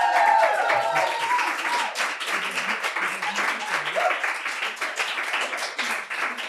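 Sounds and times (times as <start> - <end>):
crowd shouting and whooping: 0.0 - 2.0, 3.5 - 4.2
live audience applauding: 0.0 - 6.4.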